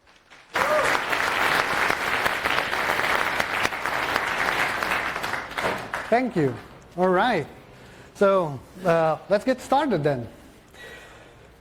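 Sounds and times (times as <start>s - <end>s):
audience applause: 0.0s - 6.2s
speech: 6.1s - 7.6s, 8.2s - 10.9s.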